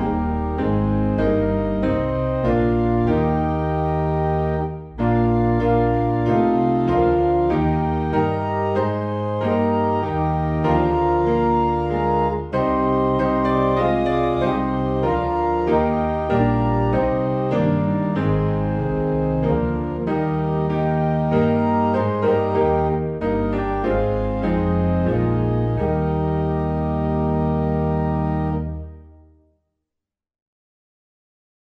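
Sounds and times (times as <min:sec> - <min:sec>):
hymn on organ: 0:00.0 - 0:29.0
piano: 0:00.0 - 0:29.5.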